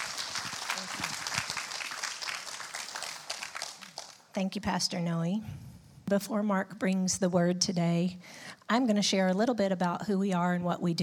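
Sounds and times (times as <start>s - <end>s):
audience clapping hands in welcome: 0.0s - 4.4s
speech: 4.4s - 11.0s.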